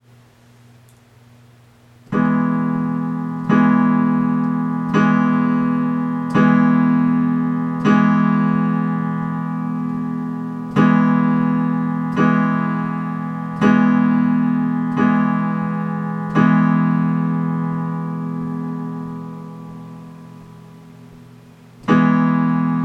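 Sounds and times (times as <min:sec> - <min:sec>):
chord: 0:02.1 - 0:22.8.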